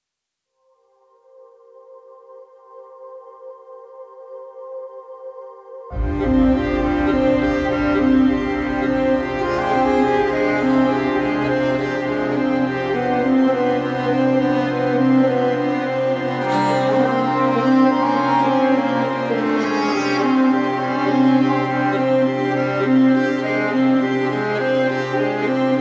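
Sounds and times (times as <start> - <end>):
instrumental music: 5.9 - 25.7.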